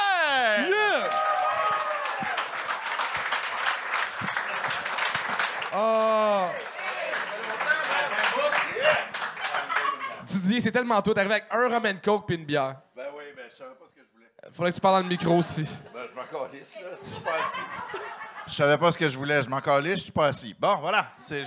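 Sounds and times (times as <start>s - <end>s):
audience applause: 0.6s - 10.1s
laughter: 4.2s - 5.2s, 7.4s - 10.3s, 15.0s - 18.7s
speech: 10.6s - 12.8s, 14.6s - 21.4s.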